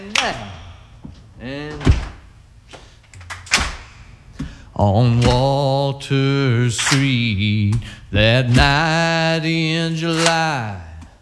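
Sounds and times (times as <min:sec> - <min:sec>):
heavy feet stomping on the floor: 0:00.0 - 0:05.8, 0:06.8 - 0:09.2
soft knocks: 0:00.0 - 0:05.8, 0:07.7 - 0:09.0
speech: 0:00.2 - 0:00.6, 0:01.4 - 0:02.0, 0:04.8 - 0:10.8.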